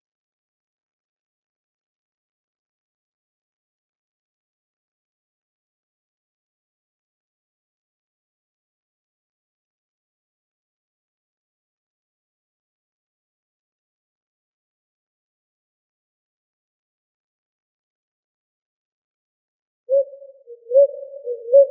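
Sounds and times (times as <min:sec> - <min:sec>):
ruddy ground dove cooing in Arizona: 0:19.9 - 0:21.6.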